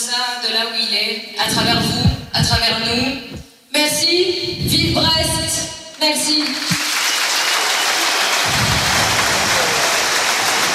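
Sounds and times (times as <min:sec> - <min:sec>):
speech: 0:00.1 - 0:06.9
deep rumble: 0:01.4 - 0:05.7
stadium crowd applause: 0:06.4 - 0:10.7.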